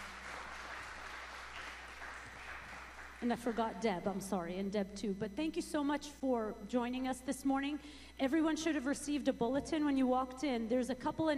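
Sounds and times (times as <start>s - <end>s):
church congregation applauding at a morning service: 0.0s - 4.0s
speech: 3.2s - 11.3s.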